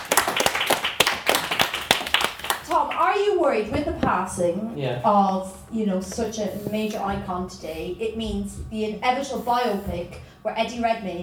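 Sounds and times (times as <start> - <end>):
audience applause: 0.0 - 3.1
speech: 3.4 - 11.2.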